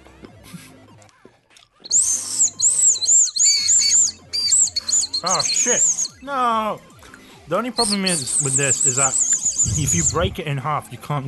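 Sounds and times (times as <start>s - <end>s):
toy whistles blowing: 1.8s - 6.2s, 7.8s - 10.3s
speech: 5.2s - 6.9s, 7.5s - 11.2s.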